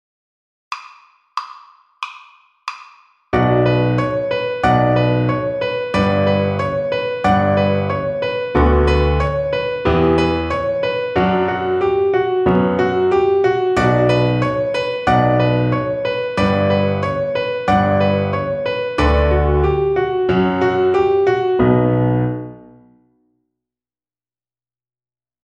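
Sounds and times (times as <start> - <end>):
piano accompaniment: 3.4 - 23.1.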